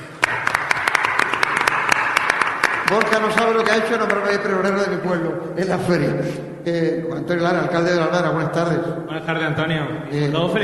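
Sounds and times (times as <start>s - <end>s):
audience applause at a Málaga fair event: 0.0s - 4.4s
speech: 2.9s - 10.6s.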